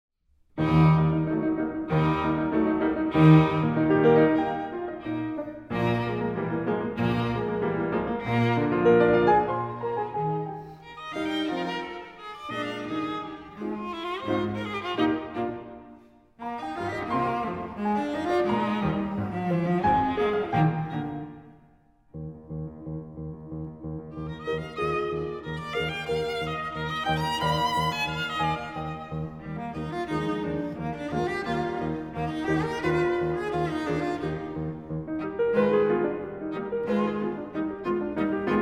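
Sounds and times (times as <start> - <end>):
piano trio: 0.6 - 38.6.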